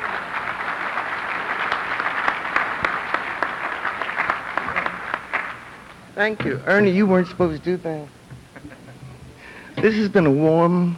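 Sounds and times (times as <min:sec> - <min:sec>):
audience applause: 0:00.0 - 0:06.0
speech: 0:06.2 - 0:08.2, 0:09.8 - 0:10.9.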